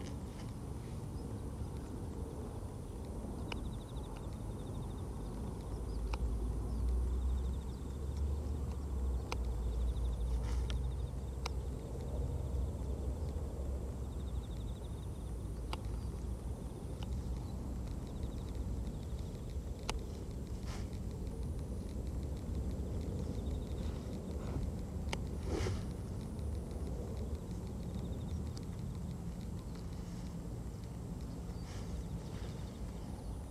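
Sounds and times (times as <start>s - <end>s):
faint insects: 0.0s - 33.5s
low rumble of passing traffic: 0.0s - 33.5s.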